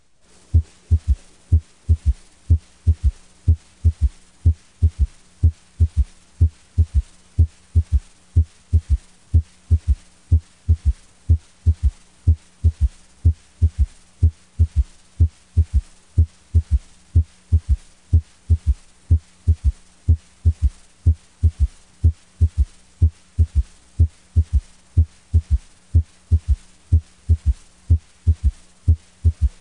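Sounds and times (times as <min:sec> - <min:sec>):
faint continuous hum: 0:00.0 - 0:29.5
heartbeat with S1, S2 and S3 through a stethoscope bell over the mitral area: 0:00.5 - 0:29.5.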